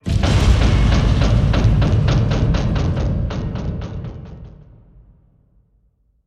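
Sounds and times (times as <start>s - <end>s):
explosions: 0.0s - 3.8s
damage hits: 0.0s - 4.5s.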